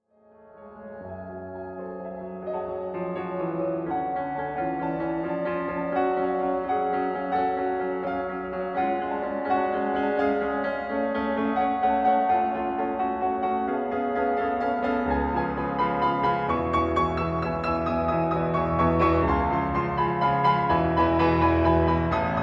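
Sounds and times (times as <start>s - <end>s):
pianos: 0.2s - 22.4s.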